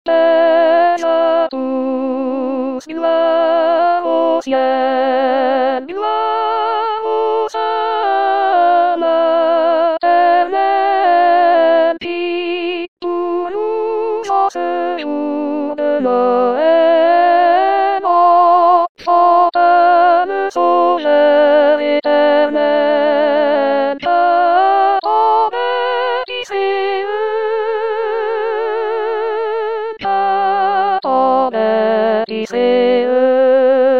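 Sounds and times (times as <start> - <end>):
soprano voice: 0.1 - 33.9.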